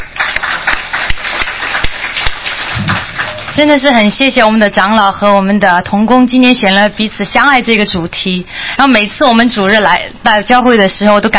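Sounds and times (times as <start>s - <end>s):
audience applause: 0.0s - 3.7s
speech: 3.6s - 11.3s.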